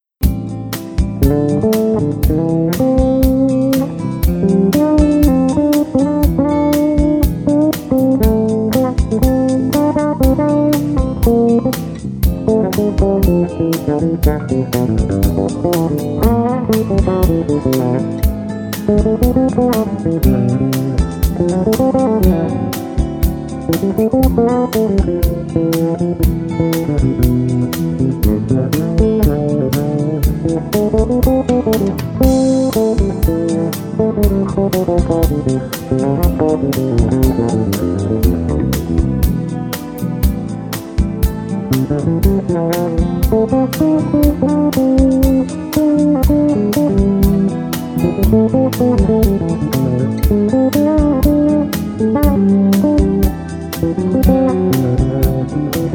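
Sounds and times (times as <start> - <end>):
bass: 0.0 - 55.9.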